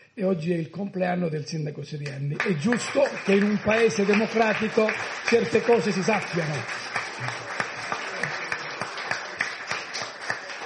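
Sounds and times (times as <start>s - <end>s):
speech: 0.2s - 7.5s
audience applause: 2.4s - 10.6s.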